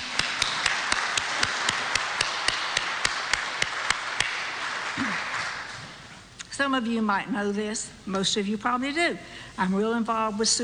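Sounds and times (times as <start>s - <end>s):
crowd applauding: 0.0s - 6.1s
sharp evenly spaced claps: 0.0s - 6.1s
speech: 6.6s - 10.6s.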